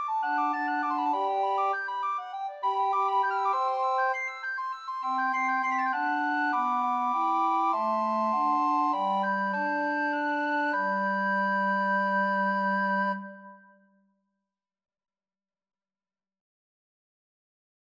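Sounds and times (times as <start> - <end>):
recorder quartet: 0.2 - 4.2, 5.1 - 13.3.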